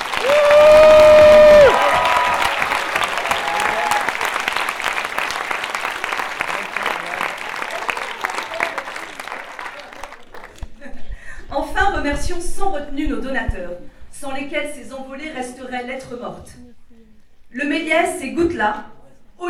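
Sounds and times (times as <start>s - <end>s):
audience applause: 0.0s - 10.8s
speech: 14.4s - 16.8s, 17.5s - 19.4s.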